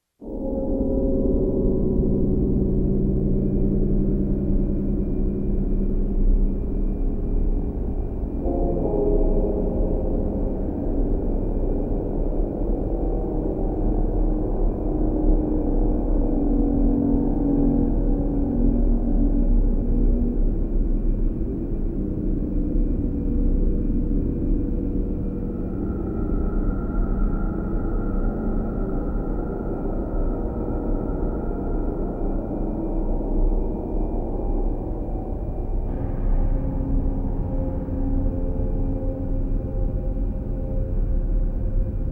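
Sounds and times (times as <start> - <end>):
ambience: 0.2 - 42.1.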